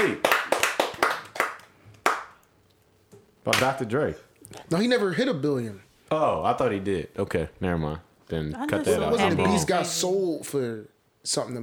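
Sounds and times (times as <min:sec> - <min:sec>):
hands clapping: 0:00.0 - 0:02.5, 0:03.5 - 0:03.8
speech: 0:03.4 - 0:11.6.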